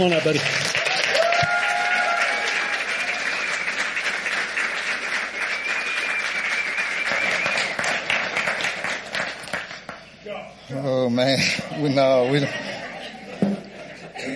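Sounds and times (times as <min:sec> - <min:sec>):
Cowboy Church congregation clapping: 0:00.0 - 0:10.1
laughter: 0:11.3 - 0:14.3.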